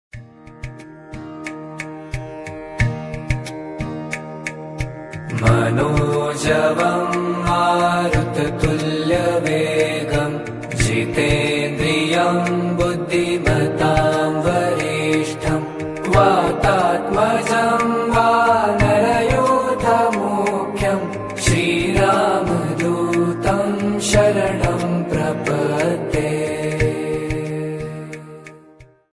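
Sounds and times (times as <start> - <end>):
mantra chanting to Lord Hanuman: 5.3 - 28.5.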